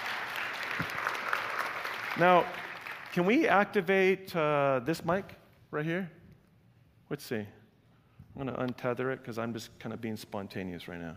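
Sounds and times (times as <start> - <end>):
crowd applauding: 0.0 - 3.4
speech: 2.2 - 6.2, 7.1 - 7.6, 8.4 - 11.1.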